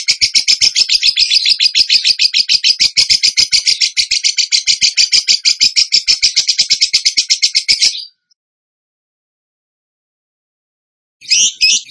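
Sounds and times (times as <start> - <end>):
bird song rattle: 0.0 - 8.3, 11.2 - 11.8.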